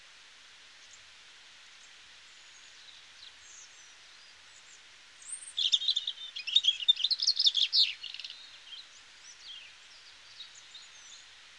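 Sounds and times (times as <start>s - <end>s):
European robin singing: 5.2s - 11.2s.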